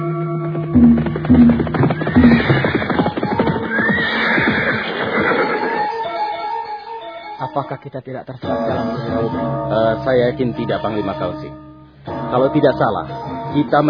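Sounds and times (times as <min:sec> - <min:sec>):
hooves clattering: 0:00.2 - 0:06.0
horse whinnying: 0:01.6 - 0:06.1
speech: 0:07.8 - 0:11.6, 0:12.3 - 0:13.8.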